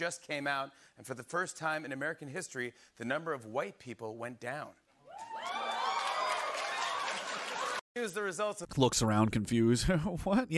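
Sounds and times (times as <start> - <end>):
speech: 0.0 - 5.6, 8.0 - 10.5
audience cheering and clapping: 5.1 - 7.8.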